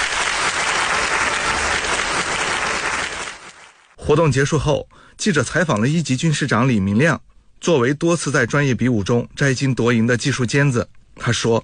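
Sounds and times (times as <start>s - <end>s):
sustained applause from soldiers: 0.0s - 4.0s
speech: 4.1s - 11.6s.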